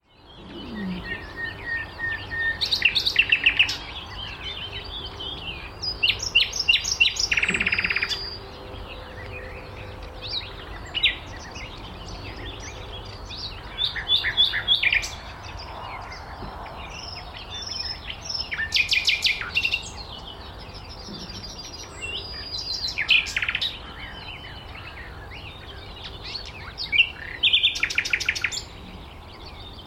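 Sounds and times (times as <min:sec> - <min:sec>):
common nightingale singing: 0:00.0 - 0:29.8.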